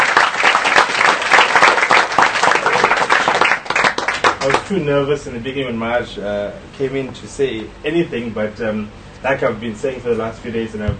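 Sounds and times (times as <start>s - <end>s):
crowd applauding: 0.0s - 4.7s
speech: 4.4s - 10.9s.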